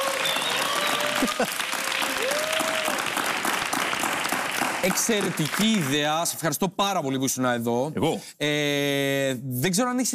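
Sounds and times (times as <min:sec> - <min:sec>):
audience applause: 0:00.0 - 0:06.4
speech: 0:01.2 - 0:01.8, 0:04.8 - 0:10.1.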